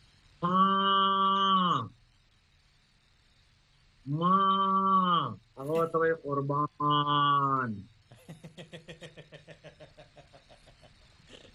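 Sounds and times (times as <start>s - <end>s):
calf calling to its mother cow: 0.4s - 1.9s, 4.1s - 5.4s
speech: 5.8s - 7.9s
laughter: 8.1s - 11.5s.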